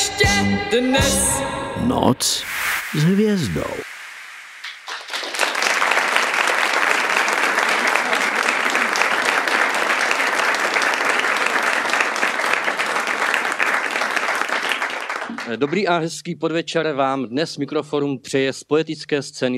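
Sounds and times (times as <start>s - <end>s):
speech: 0.3s - 3.9s, 15.5s - 19.5s
audience applause: 4.6s - 15.7s.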